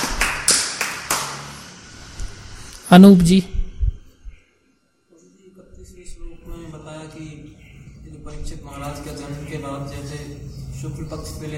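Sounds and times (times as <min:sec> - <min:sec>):
hand clapping: 0:00.0 - 0:01.6
speech: 0:02.9 - 0:03.6, 0:08.3 - 0:11.5.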